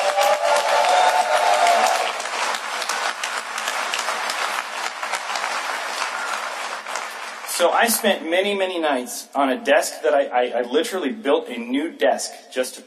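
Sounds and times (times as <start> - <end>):
crowd cheering yell: 0.0 - 7.1
applause and clapping: 0.0 - 8.8
speech: 7.6 - 12.8.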